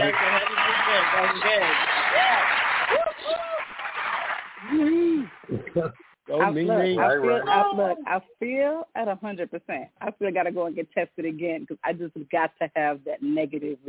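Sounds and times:
audience applause: 0.0s - 5.6s
speech: 1.0s - 3.1s, 6.5s - 13.8s.

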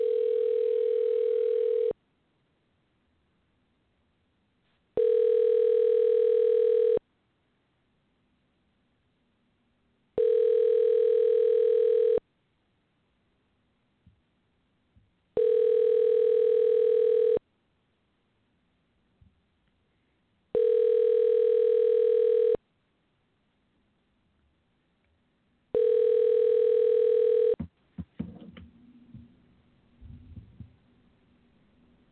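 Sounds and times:
telephone line beeps while dialing out on a phone: 0.0s - 2.0s, 5.0s - 7.0s, 10.2s - 12.2s, 15.4s - 17.4s, 20.6s - 22.6s, 25.8s - 27.6s.

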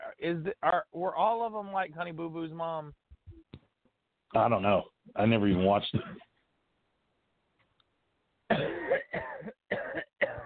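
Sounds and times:
speech: 0.2s - 3.0s, 4.3s - 6.3s
man coughing: 6.0s - 6.3s, 8.5s - 10.4s.

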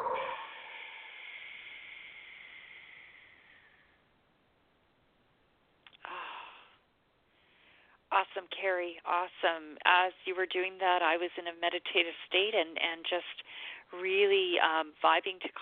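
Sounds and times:
deep breath during a guided breathing exercise: 0.0s - 4.2s, 6.0s - 8.0s, 13.4s - 13.9s
speech: 8.4s - 15.6s.

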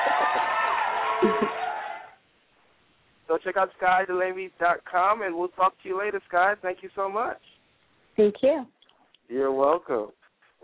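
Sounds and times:
audience applause: 0.0s - 2.2s
speech: 1.2s - 1.6s, 3.4s - 7.5s, 8.2s - 10.6s.

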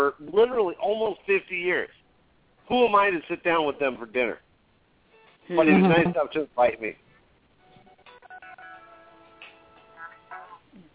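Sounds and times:
speech: 0.0s - 2.0s, 2.7s - 4.4s, 5.5s - 7.0s
mobile phone melodic ringtone: 7.6s - 10.2s.

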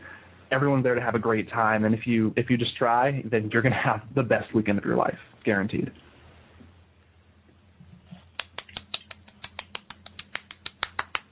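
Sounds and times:
speech: 0.5s - 6.1s
single person clapping near microphone: 8.3s - 11.2s.

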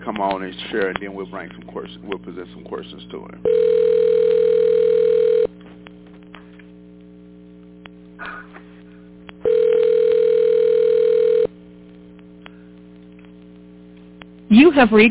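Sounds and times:
faint low hum: 0.0s - 15.0s
speech: 0.1s - 4.1s, 14.7s - 15.0s
phone ringback tones on a call: 3.4s - 5.5s, 9.4s - 11.5s.

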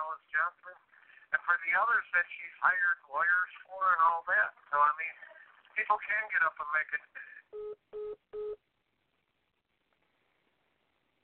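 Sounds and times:
speech: 0.2s - 8.2s
phone line beep from a call disconnecting: 7.5s - 8.6s.

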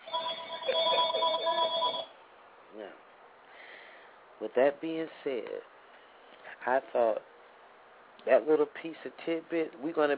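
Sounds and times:
doctor's telephone ringing with a steady electronic trill: 0.0s - 2.2s
speech: 4.4s - 5.7s, 6.6s - 7.3s, 8.2s - 10.1s.

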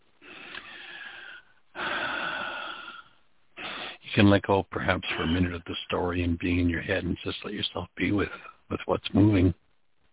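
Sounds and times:
person breathing deeply during a guided emotional session: 0.2s - 4.0s
speech: 4.2s - 9.6s.

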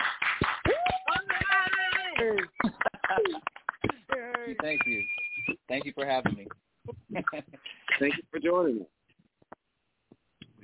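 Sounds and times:
sparse hand claps welcoming a talk show guest: 0.0s - 6.5s
speech: 4.6s - 9.0s.

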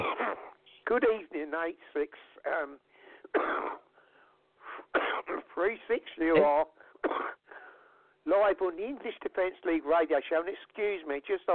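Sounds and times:
person coughing fit: 0.0s - 0.6s, 3.3s - 3.9s, 4.9s - 5.5s, 6.3s - 7.4s
speech: 0.9s - 3.8s, 5.2s - 6.8s, 8.2s - 11.5s
wheezy breaths and throat noises: 2.9s - 3.3s, 3.9s - 4.9s, 6.8s - 8.2s.

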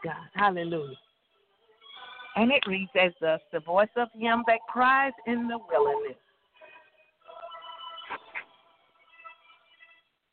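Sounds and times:
speech: 0.0s - 1.0s, 2.4s - 6.2s
telephone ringing: 1.8s - 8.4s.

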